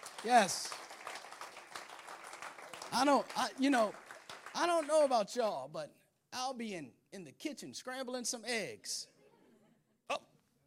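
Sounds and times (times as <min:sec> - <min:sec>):
audience clapping: 0:00.0 - 0:05.5
speech: 0:00.2 - 0:00.8, 0:02.9 - 0:04.0, 0:04.6 - 0:09.1, 0:10.1 - 0:10.3.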